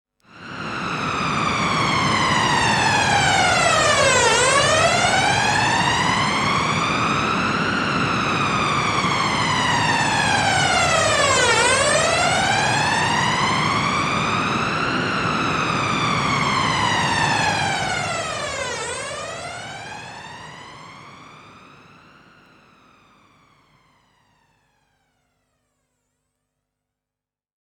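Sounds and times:
Teisco S100P wave with flanger: 0.3s - 21.4s.

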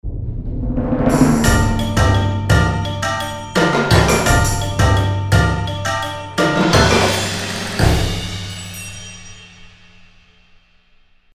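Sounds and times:
hip hop mix: 1.1s - 9.6s.

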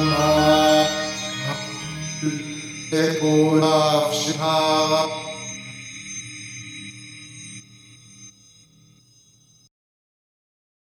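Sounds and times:
Eventide H3000 reverse shift synth voice: 0.0s - 6.2s.

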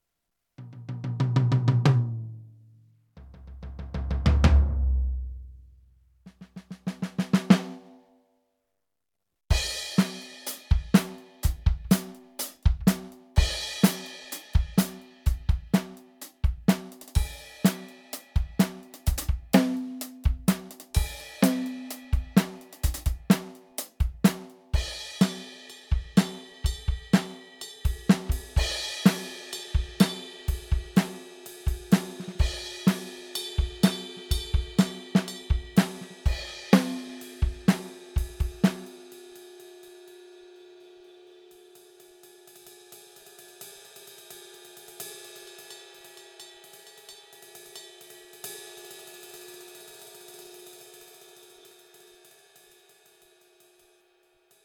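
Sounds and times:
EFNOTE 7 drum kit Vintage Coated: 0.6s - 2.4s, 3.2s - 5.4s, 6.3s - 8.0s, 9.5s - 39.5s.

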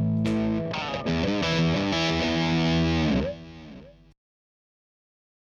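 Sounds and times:
distorted delay effect: 0.2s - 3.8s.

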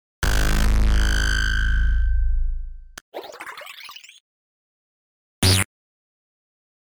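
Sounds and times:
impact sound effect: 0.2s - 3.0s, 5.4s - 5.7s.

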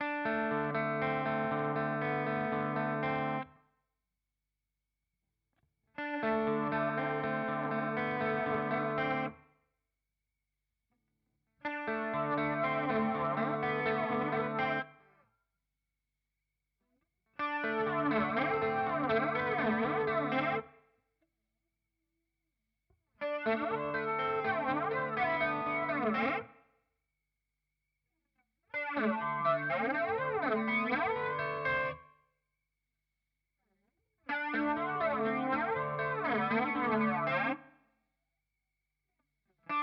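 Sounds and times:
Walrus Audio Polychrome guitar pedal effect: 0.0s - 3.5s, 6.0s - 9.4s, 11.7s - 15.0s, 17.4s - 20.7s, 23.2s - 26.6s, 28.7s - 32.0s, 34.3s - 37.7s, 39.7s - 39.8s.

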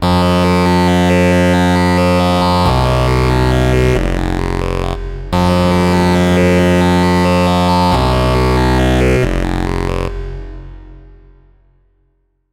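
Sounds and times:
Korg KROSS 2 own samples with effects: 0.0s - 11.5s.

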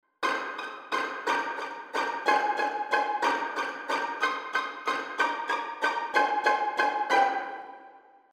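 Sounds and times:
string ensemble violins pizzicato: 0.2s - 7.9s.

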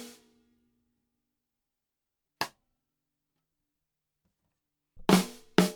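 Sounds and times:
TAMA LST1365 drum tuned too low: 5.0s - 5.6s.

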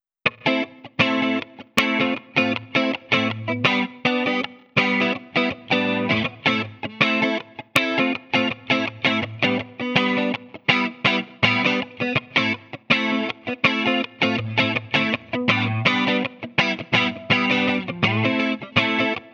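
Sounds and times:
80s disco guitar through multi-effects processor: 0.2s - 19.3s.

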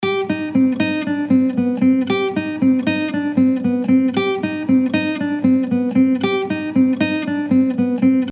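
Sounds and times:
guitar picking through Git Amp Pro: 0.0s - 8.3s.

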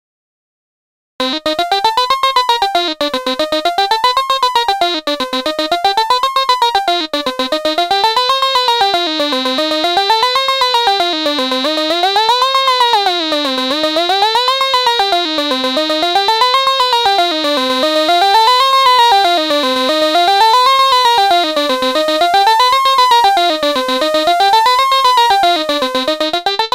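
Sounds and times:
PAiA voltage-controlled oscillator: 1.2s - 26.6s.

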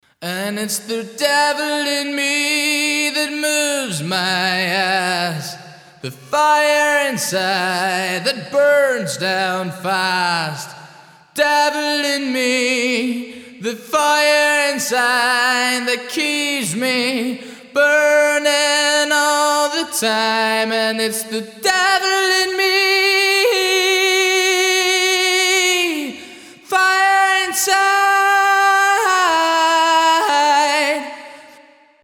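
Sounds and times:
voice with large bright hall reverb: 0.0s - 32.0s.

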